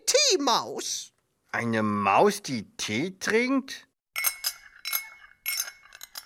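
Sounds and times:
speech: 0.3 - 3.9
spoon stirring in a teacup: 4.2 - 6.2.

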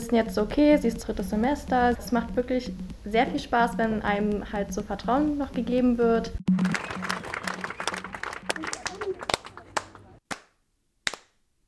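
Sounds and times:
speech: 0.1 - 6.6
people clapping from balconies: 6.5 - 10.5, 11.1 - 11.3.

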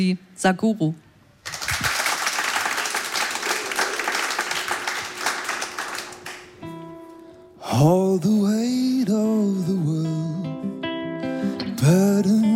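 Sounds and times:
speech: 0.0 - 1.0, 7.8 - 10.6, 11.8 - 12.5
thunderous audience applause: 1.4 - 6.6.

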